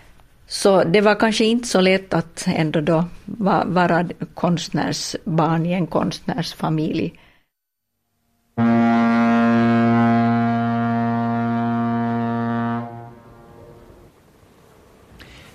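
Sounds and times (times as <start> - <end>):
speech: 0.6 - 7.2
steamboat horn blast: 8.6 - 14.1.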